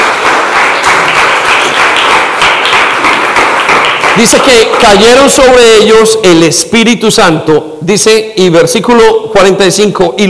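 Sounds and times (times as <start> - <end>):
crowd applause: 0.0 - 5.4
speech: 4.2 - 10.2.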